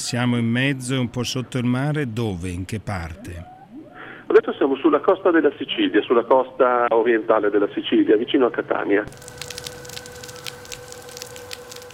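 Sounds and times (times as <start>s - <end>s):
speech: 0.1s - 3.6s, 4.4s - 9.4s
snapping shrimp crackling underwater off Sicily: 9.1s - 11.9s.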